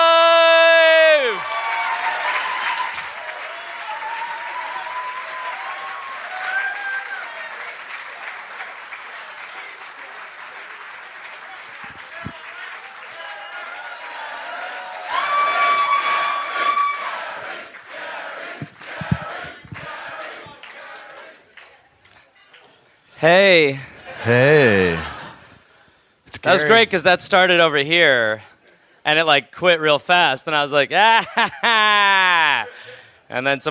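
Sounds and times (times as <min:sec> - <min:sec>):
live stage-show audience applauding: 0:00.9 - 0:21.8
speech: 0:23.2 - 0:25.1, 0:26.4 - 0:31.9, 0:33.3 - 0:33.6
laughter: 0:24.0 - 0:25.5, 0:31.0 - 0:33.0.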